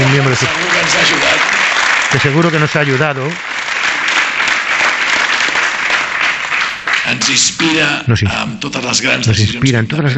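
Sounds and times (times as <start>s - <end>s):
audience applause: 0.0s - 7.8s
speech: 0.1s - 1.2s, 2.1s - 3.5s, 7.1s - 10.1s.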